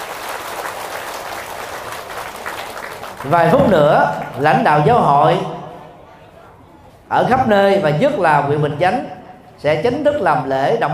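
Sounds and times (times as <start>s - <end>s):
round of applause: 0.0s - 4.6s
speech: 3.2s - 5.6s, 7.1s - 10.9s.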